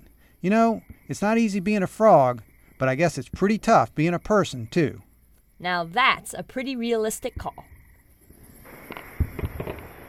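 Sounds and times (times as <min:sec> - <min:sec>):
speech: 0:00.4 - 0:07.7
fireworks finale: 0:08.3 - 0:10.0.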